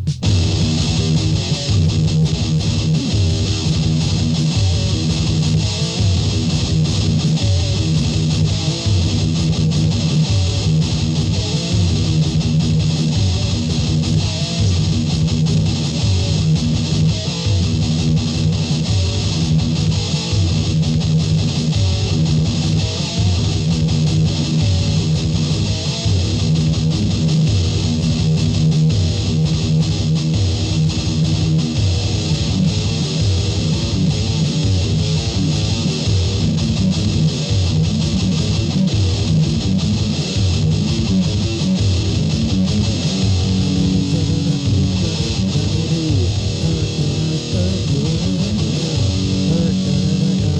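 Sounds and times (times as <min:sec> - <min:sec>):
riff tapes: 0:00.1 - 0:50.5.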